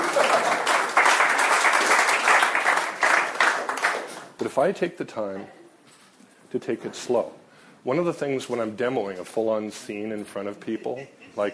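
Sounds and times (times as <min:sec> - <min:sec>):
audience clapping for volunteers: 0:00.0 - 0:04.4
speech: 0:04.6 - 0:05.6, 0:06.5 - 0:11.5.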